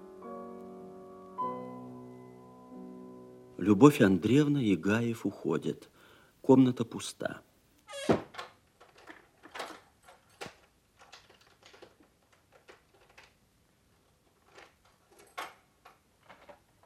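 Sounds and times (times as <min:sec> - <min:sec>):
speech: 0:03.6 - 0:08.2
outer doors being locked with a key: 0:07.9 - 0:13.4, 0:14.0 - 0:16.8.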